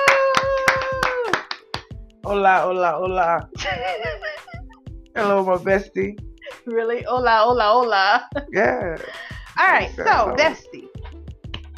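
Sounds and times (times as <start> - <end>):
person whooping or cheering: 0.0 - 1.4
hand clapping: 0.0 - 2.0, 11.4 - 11.7
speech: 2.3 - 4.3, 5.2 - 10.7.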